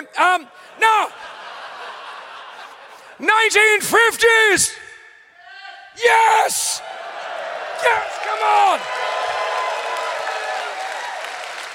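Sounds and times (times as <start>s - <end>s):
speech: 0.1s - 1.4s, 3.2s - 4.8s, 6.0s - 7.0s, 7.8s - 9.1s
laughter: 0.6s - 3.2s
audience applauding: 7.0s - 11.7s.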